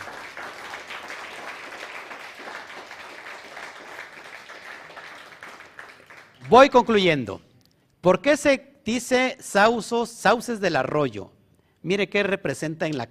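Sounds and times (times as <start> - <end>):
audience applause: 0.0 - 6.7
speech: 6.5 - 13.0.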